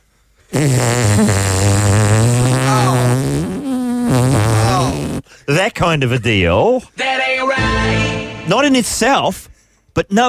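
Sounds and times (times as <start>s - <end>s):
voice imitating a loud sustained fart: 0.5s - 5.2s
speech: 0.6s - 1.7s, 5.5s - 7.7s, 8.5s - 10.2s.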